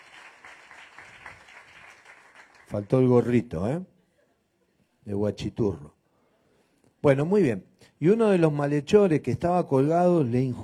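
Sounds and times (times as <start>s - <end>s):
group clapping for a student: 0.0s - 2.7s
speech: 2.7s - 3.9s, 5.0s - 6.0s, 7.0s - 10.6s.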